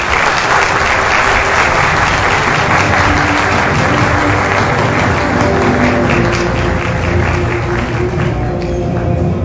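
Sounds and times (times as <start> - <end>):
audience applause: 0.0 - 9.3.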